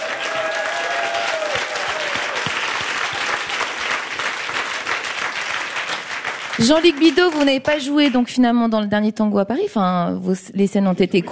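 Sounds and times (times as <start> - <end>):
audience applause: 0.0 - 8.2
speech: 6.6 - 11.2.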